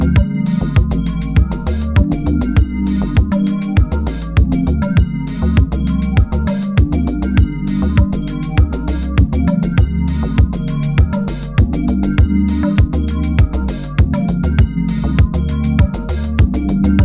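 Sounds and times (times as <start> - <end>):
musical downbeat: 0.0 - 17.0.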